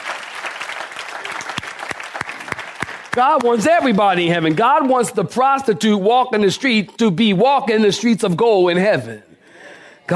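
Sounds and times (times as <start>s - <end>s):
audience clapping: 0.0s - 5.7s
speech: 3.2s - 9.3s.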